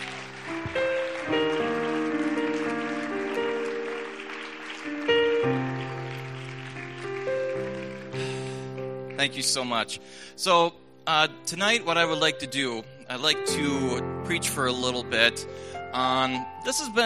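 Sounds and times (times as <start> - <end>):
audience applause: 0.0 - 9.2
keyboard or organ chords: 0.0 - 17.0
speech: 9.2 - 17.0.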